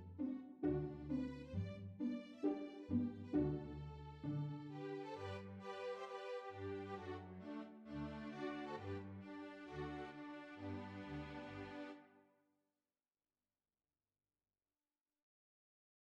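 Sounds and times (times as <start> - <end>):
string instruments: 0.0 - 12.1.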